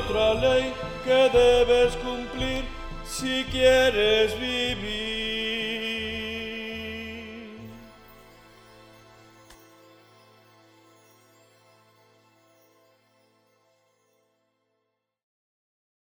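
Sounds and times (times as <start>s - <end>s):
bass music: 0.0s - 9.0s.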